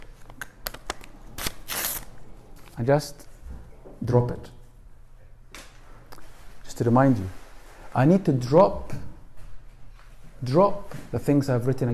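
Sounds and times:
paper list being torn up by hand: 1.4s - 2.1s
speech: 2.8s - 3.3s, 4.0s - 4.6s, 6.8s - 9.0s, 10.4s - 11.9s.

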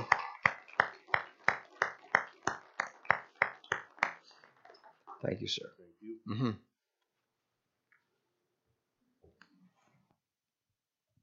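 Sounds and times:
rhythmic hand claps in a reverberant room: 0.0s - 4.8s
speech: 5.2s - 6.7s.

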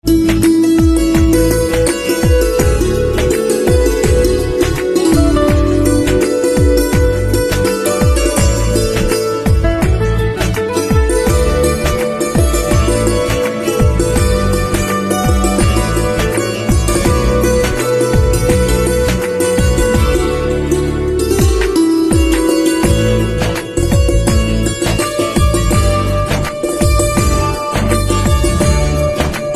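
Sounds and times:
santoor instrumental ringtone: 0.0s - 29.5s.

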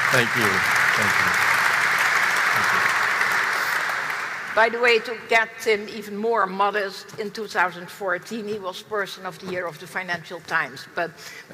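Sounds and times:
audience applause at an event honouring a chief executive: 0.0s - 4.9s
speech: 0.1s - 1.5s, 4.6s - 11.5s.

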